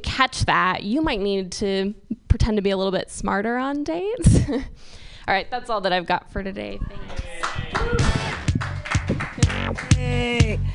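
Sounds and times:
speech: 0.0s - 8.2s, 9.1s - 10.7s
people cheering: 7.1s - 10.6s
audience clapping: 7.2s - 10.6s.

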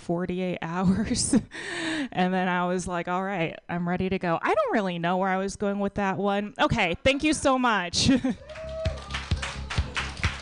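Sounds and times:
speech: 0.1s - 8.6s
slow sparse audience clapping: 8.4s - 10.4s.

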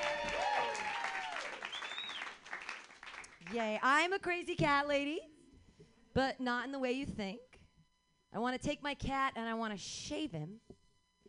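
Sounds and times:
audience applause for a performer opening a stand-up comedy set: 0.0s - 3.5s
speech: 3.5s - 5.3s, 6.2s - 7.5s, 8.3s - 10.8s.

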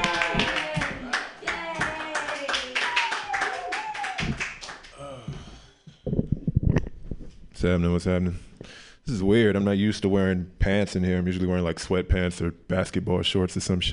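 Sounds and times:
loud excited voices cheering: 0.0s - 4.6s
audience clapping at a comedy show: 0.0s - 5.2s
speech: 7.6s - 8.5s, 9.1s - 13.9s.

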